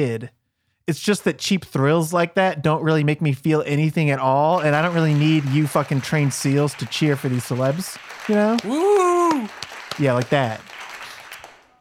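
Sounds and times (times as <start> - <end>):
speech: 0.0 - 10.7
audience clapping: 4.3 - 11.7.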